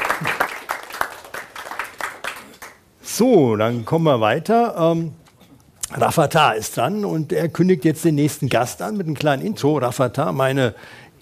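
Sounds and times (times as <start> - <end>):
audience applause: 0.0 - 2.8
speech: 3.2 - 5.2, 5.9 - 11.2.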